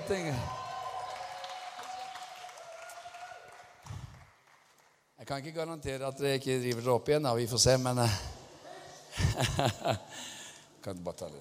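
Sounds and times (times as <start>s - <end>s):
audience applause: 0.0s - 5.0s
speech: 0.1s - 0.6s, 5.3s - 8.4s, 9.4s - 11.3s
laughter: 9.0s - 10.2s.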